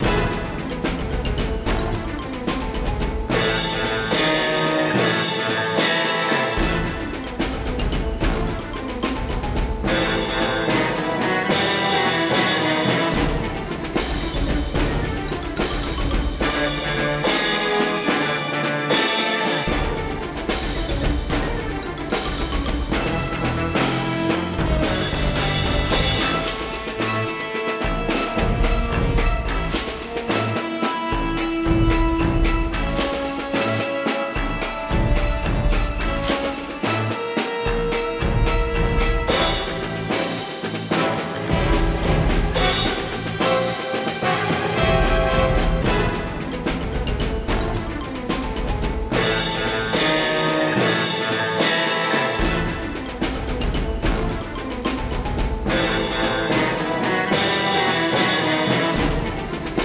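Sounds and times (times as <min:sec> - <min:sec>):
looping battle soundtrack music: 0:00.0 - 0:59.8.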